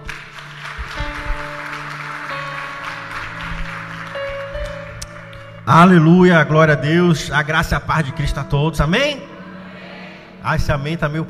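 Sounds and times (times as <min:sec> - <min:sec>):
audience clapping: 0:00.0 - 0:05.7
sustained keyboard-like chords: 0:00.0 - 0:11.2
speech: 0:05.7 - 0:09.3, 0:10.4 - 0:11.2.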